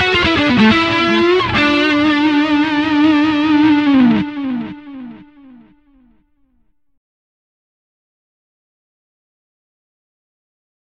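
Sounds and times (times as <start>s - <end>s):
electric guitar blues lick: 0.0s - 6.2s.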